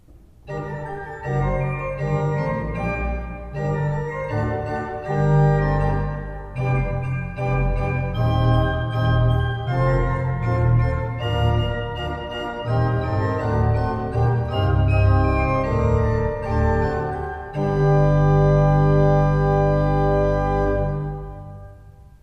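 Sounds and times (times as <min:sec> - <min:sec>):
pipe organ: 0:00.3 - 0:22.2.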